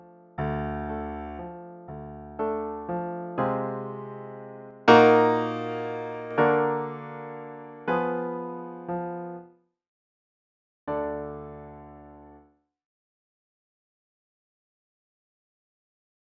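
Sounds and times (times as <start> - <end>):
piano: 0.0 - 9.6, 10.9 - 12.5.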